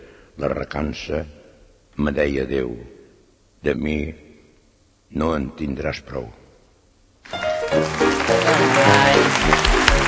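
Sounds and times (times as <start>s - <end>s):
speech: 0.4s - 1.4s, 2.0s - 3.0s, 3.6s - 4.3s, 5.1s - 6.4s, 7.3s - 9.7s
audience applause after poem recitation: 7.3s - 10.0s.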